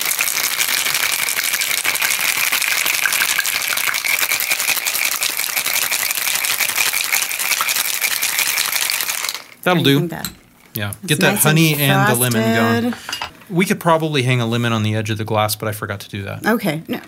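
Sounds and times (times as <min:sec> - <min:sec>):
drink with ice shaken in a cocktail shaker: 0:00.0 - 0:09.7
speech: 0:09.7 - 0:17.0.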